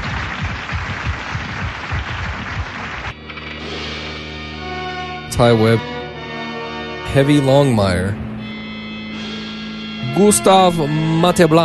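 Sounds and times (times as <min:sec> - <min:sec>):
audience applause: 0:00.0 - 0:03.2
speech: 0:05.4 - 0:06.0, 0:07.1 - 0:08.3, 0:10.1 - 0:11.6.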